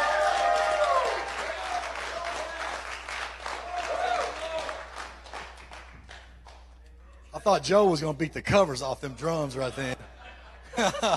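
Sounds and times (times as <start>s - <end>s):
audience hand clapping: 0.0s - 6.8s
speech: 7.4s - 10.0s, 10.8s - 11.1s
laughter: 9.6s - 11.1s.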